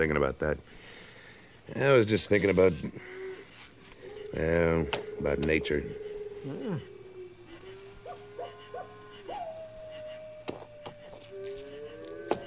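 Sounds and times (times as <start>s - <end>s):
speech: 0.0s - 1.0s, 1.7s - 3.2s, 4.3s - 6.9s
coyote howling at night: 2.8s - 12.4s
owl hooting at night: 2.8s - 12.4s.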